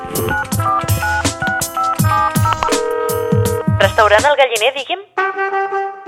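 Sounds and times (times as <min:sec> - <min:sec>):
telephone keypad dialing tones: 0:00.1 - 0:01.2, 0:02.4 - 0:04.0
speech: 0:00.2 - 0:00.8, 0:04.0 - 0:05.9.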